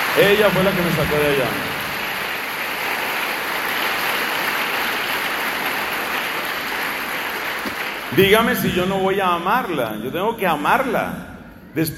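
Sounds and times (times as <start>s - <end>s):
audience applause: 0.0s - 8.2s
speech: 0.2s - 1.7s, 8.1s - 11.9s.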